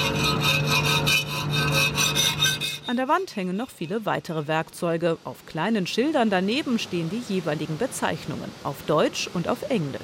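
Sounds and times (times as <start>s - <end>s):
hand file rasping on metal clamped in a vise: 0.0s - 3.0s
low constant hum: 0.0s - 10.0s
speech: 2.9s - 10.0s.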